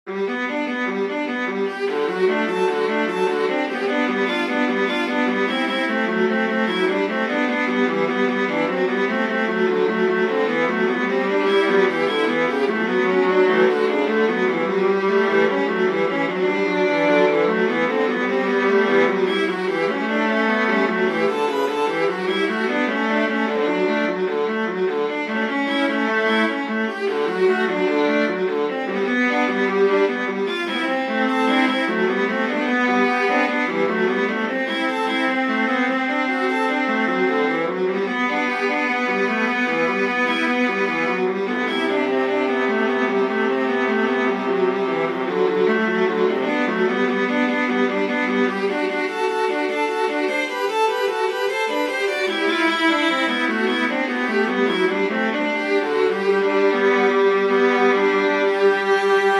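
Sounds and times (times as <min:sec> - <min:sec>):
viola duet playing: 0:00.1 - 0:59.3.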